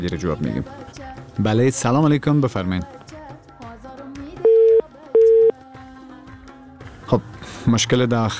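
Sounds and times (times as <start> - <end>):
speech: 0.0 - 3.0, 7.1 - 8.3
telephone busy tone after a dropped call: 4.4 - 5.6.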